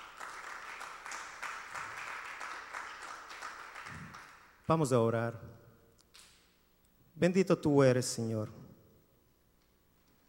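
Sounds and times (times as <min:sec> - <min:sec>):
audience applause: 0:00.0 - 0:04.5
speech: 0:04.7 - 0:05.6, 0:07.2 - 0:08.6.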